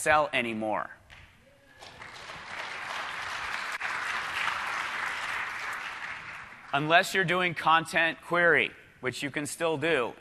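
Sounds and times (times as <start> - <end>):
speech: 0.0 - 1.0, 6.7 - 10.1
audience applause in a conference session: 1.7 - 7.2.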